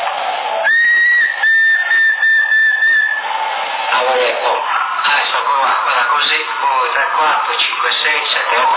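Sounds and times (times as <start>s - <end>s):
high-pitched whistle tone over CB radio: 0.5s - 3.4s
hiss and crackle on a noisy band-limited radio channel: 3.2s - 8.7s
speech: 6.4s - 8.7s.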